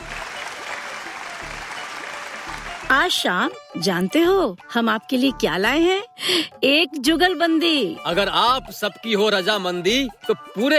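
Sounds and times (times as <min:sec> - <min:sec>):
applause at a village gathering show: 0:00.0 - 0:02.9
speech: 0:02.9 - 0:10.7.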